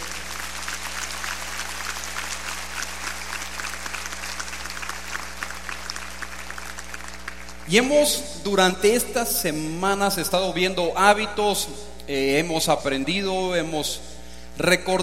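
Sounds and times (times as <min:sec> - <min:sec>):
audience applause: 0:00.0 - 0:07.6
speech: 0:07.7 - 0:15.0.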